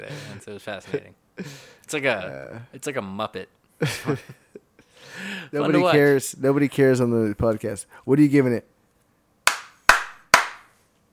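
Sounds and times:
speech: 0.0 - 4.4, 5.0 - 8.7
hand slaps: 9.4 - 10.8.

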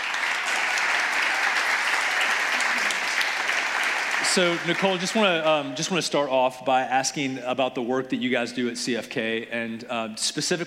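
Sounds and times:
crowd applauding to welcome a guest: 0.0 - 5.8
speech: 4.4 - 10.6.

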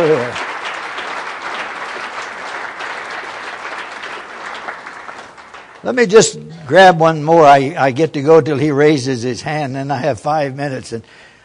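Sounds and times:
speech: 0.0 - 0.5, 5.8 - 11.2
audience applause: 0.0 - 6.8.

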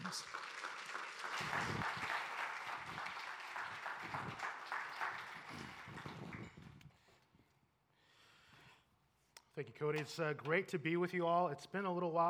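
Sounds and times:
crowd applause: 0.0 - 6.8
speech: 0.1 - 0.4, 9.6 - 12.2.

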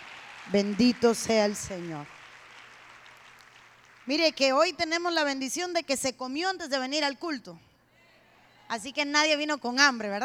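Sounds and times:
audience applause: 0.0 - 4.0
speech: 0.5 - 2.2, 4.0 - 7.6, 8.7 - 10.2.

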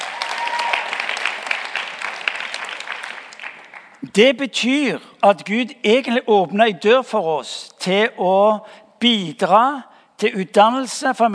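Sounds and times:
audience applause: 0.0 - 4.0
speech: 4.1 - 11.3.

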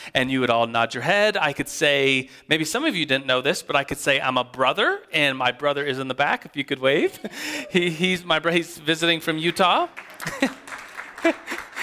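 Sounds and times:
speech: 0.0 - 10.6, 11.2 - 11.6
laughter: 6.9 - 8.6, 10.0 - 11.8
audience applause: 9.2 - 11.8.

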